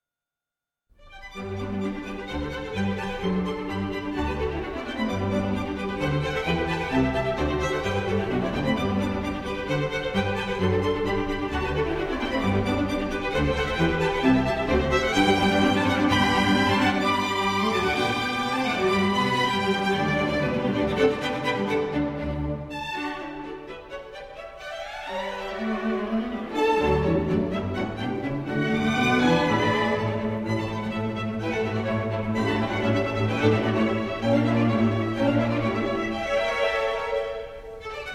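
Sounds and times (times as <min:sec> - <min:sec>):
classical music: 0:00.9 - 0:38.1.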